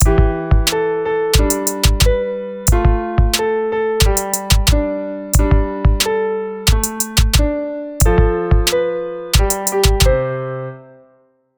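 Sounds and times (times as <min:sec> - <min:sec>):
song with beat: 0:00.0 - 0:00.8, 0:01.4 - 0:03.4, 0:04.0 - 0:04.8, 0:05.4 - 0:06.1, 0:06.7 - 0:08.8, 0:09.4 - 0:10.2.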